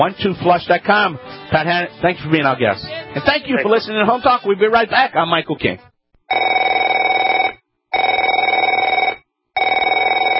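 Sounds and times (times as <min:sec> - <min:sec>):
speech: 0:00.0 - 0:05.9
telephone bell ringing: 0:06.3 - 0:10.3.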